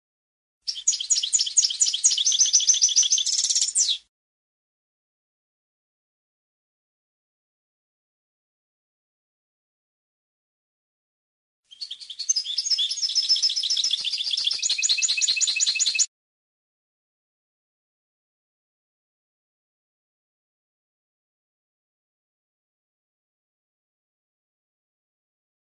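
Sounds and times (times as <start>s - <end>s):
European goldfinch song of tinkling twitter: 0.7s - 4.0s, 11.7s - 16.1s.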